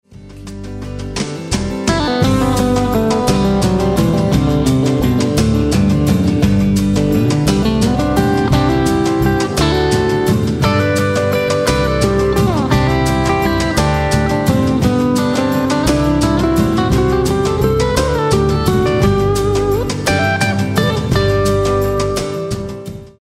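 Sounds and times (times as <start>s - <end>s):
Fender guitar: 0.2s - 23.2s.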